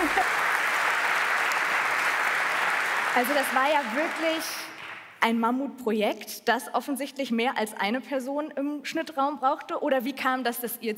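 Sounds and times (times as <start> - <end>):
audience applause: 0.0 - 5.1
speech: 3.2 - 10.9.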